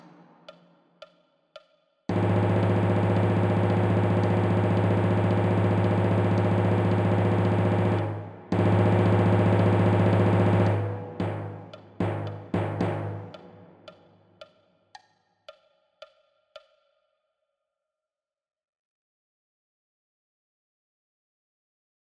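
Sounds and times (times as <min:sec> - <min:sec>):
timpani: 0:02.1 - 0:14.1.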